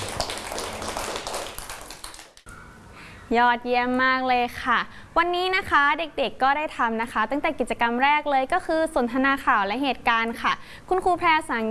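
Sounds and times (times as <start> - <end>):
children clapping hands: 0.0 - 2.5
speech: 3.3 - 11.6.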